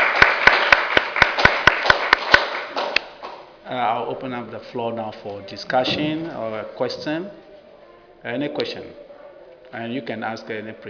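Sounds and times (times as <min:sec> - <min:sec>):
audience applause: 0:00.0 - 0:03.1
sharp regular claps: 0:00.0 - 0:03.5
speech: 0:03.8 - 0:07.5, 0:08.2 - 0:09.0, 0:09.7 - 0:10.8.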